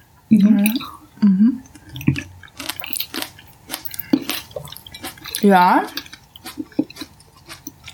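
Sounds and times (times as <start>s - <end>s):
speech: 0.3s - 1.0s, 5.4s - 6.0s
chewing a cashew cream snack: 1.6s - 7.9s.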